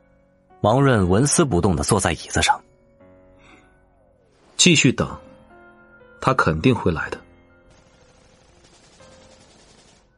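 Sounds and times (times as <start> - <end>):
speech: 0.6 - 2.7, 4.6 - 5.3, 6.2 - 7.2
rapid crisp gunshots at a fortified stronghold: 7.7 - 10.1.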